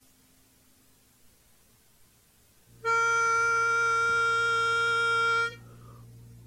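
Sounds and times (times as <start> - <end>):
lead melody: 2.8 - 5.8.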